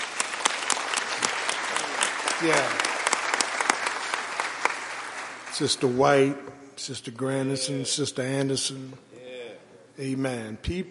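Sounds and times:
audience applauding: 0.0s - 6.0s
speech: 2.4s - 2.9s, 5.6s - 9.1s, 10.0s - 10.8s.

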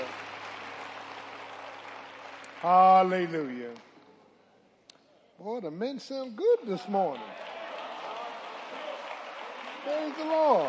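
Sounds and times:
audience clapping: 0.0s - 3.9s, 6.7s - 10.6s
speech: 2.6s - 3.9s, 5.4s - 7.5s, 9.8s - 10.6s.

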